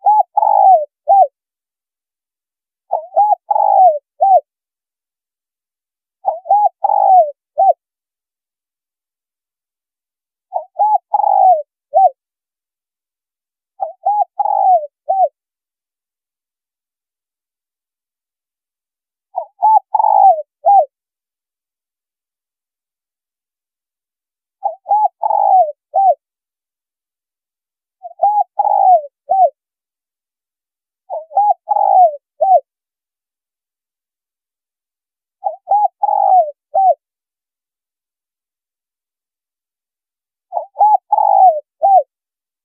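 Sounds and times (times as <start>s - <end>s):
spotted dove cooing: 0.0s - 1.3s, 2.9s - 4.5s, 6.2s - 7.8s, 10.5s - 12.2s, 13.8s - 15.4s, 19.4s - 20.9s, 24.6s - 26.2s, 28.0s - 29.6s, 31.1s - 32.7s, 35.4s - 37.0s, 40.5s - 42.1s.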